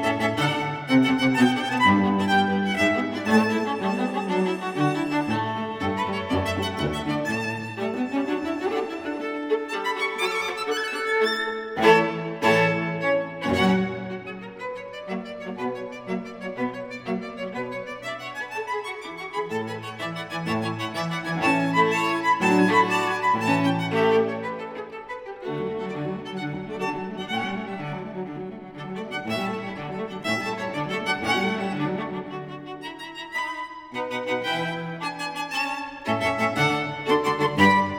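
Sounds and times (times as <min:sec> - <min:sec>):
string trio of violin viola and cello playing: 0:00.0 - 0:37.9.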